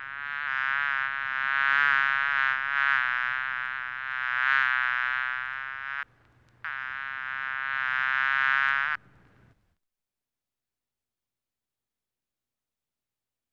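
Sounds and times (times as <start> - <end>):
bee buzzing: 0.0 - 9.0.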